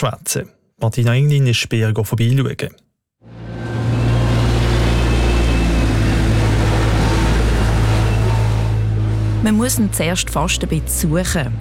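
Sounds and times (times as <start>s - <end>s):
speech: 0.0s - 2.8s, 9.4s - 11.5s
heavy diesel engine droning at a construction site: 3.2s - 11.5s.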